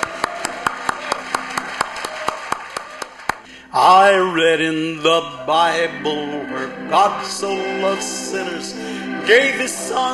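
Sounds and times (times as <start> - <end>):
gospel-style gathering audience clapping for a performer: 0.0 - 3.5
speech: 3.8 - 10.1.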